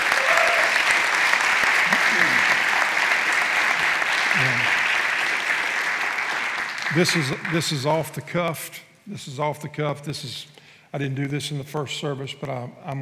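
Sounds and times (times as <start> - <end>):
audience applause for interns: 0.0 - 8.0
speech: 7.0 - 13.0.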